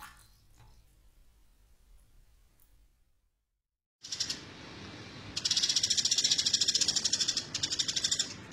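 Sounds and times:
bird giving buzzy trills of high pulsed notes: 4.0 - 4.6, 5.3 - 8.5.

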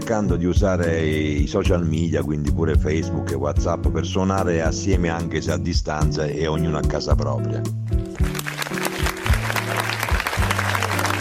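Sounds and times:
speech: 0.1 - 8.4
applause: 8.0 - 11.1.

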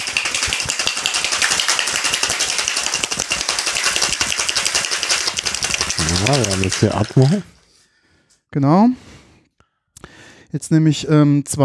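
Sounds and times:
ice cubes rattling in a cocktail shaker while shaking an Espresso Martini: 0.0 - 7.6
speech: 6.2 - 7.5, 8.5 - 9.1, 10.5 - 11.6.

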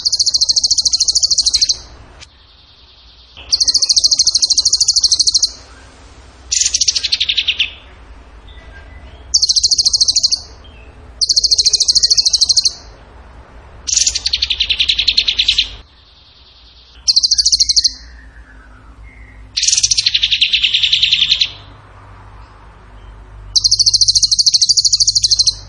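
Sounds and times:
bird trilling: 0.0 - 5.9, 6.5 - 13.0, 13.9 - 21.7, 23.5 - 25.6.

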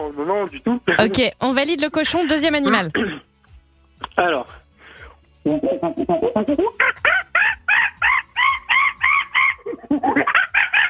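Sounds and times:
speech: 0.1 - 3.2, 4.2 - 4.6, 5.4 - 7.0
man imitating a monkey while making its gestures: 5.4 - 10.8.

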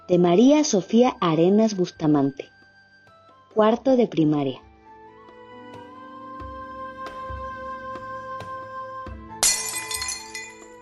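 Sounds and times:
speech: 0.1 - 2.5, 3.6 - 4.6
glass breaking in a kitchen: 9.4 - 10.8.

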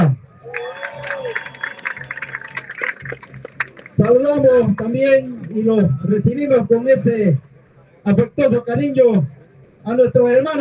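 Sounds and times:
crowd applauding: 0.4 - 5.6
speech: 4.1 - 10.5.

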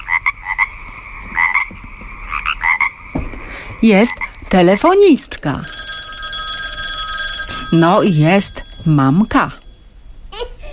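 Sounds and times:
frog croaking in quick raspy bursts: 0.0 - 4.5
speech: 3.8 - 5.8, 7.7 - 9.6.

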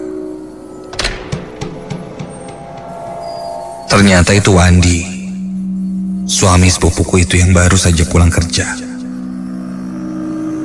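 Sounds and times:
steady low hum: 0.0 - 6.6
front door opening with a sharp clunk: 0.3 - 4.0
clicks and knocks: 0.8 - 3.6
speech: 3.9 - 5.1, 6.3 - 8.9.

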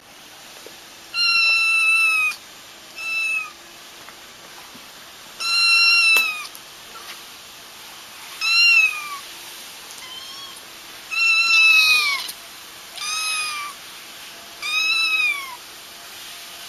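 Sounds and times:
faint background hum: 0.0 - 16.6
domestic cat meowing: 1.2 - 2.4, 3.0 - 3.6, 5.4 - 6.5, 8.4 - 9.3, 10.0 - 13.8, 14.6 - 15.6.

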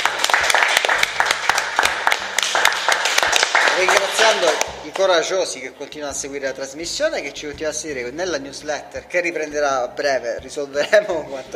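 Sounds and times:
small group clapping at a dinner gathering: 0.0 - 5.2
speech: 4.3 - 11.5.

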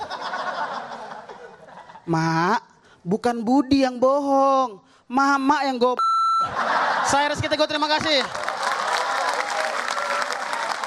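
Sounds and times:
laughter: 0.0 - 2.1, 6.4 - 10.8
speech: 2.1 - 8.4
audience applause and cheering for a performer: 8.2 - 10.8.

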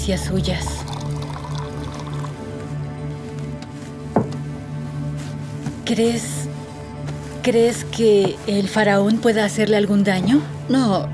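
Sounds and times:
speech: 0.0 - 0.8, 5.9 - 6.5, 7.4 - 11.1
water pouring into a glass: 0.5 - 2.6.

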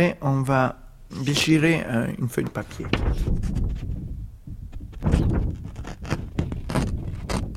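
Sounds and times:
speech: 0.0 - 3.9
door opening and closing: 2.7 - 3.8, 4.7 - 7.4.

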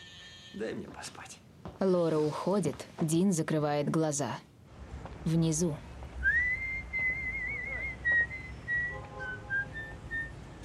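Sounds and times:
speech: 0.5 - 4.5, 5.2 - 5.9
person whistling a song: 6.2 - 10.4.

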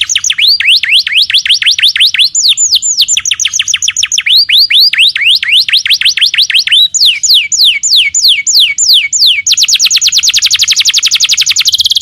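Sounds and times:
canary song: 0.0 - 11.9.

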